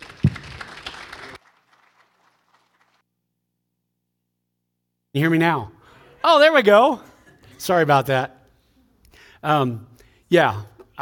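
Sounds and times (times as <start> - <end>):
audience applause: 0.0 - 3.0
speech: 5.2 - 8.4, 9.4 - 10.9.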